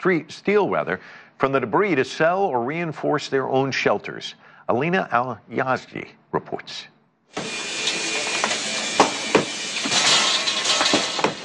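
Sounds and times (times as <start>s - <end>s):
speech: 0.0s - 7.6s
heavy hammer breaking concrete blocks in Gaza: 7.4s - 11.4s.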